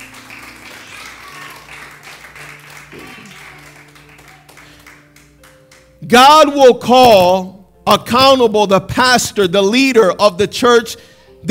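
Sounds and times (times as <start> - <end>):
round of applause: 0.0 - 6.0
speech: 6.1 - 11.4.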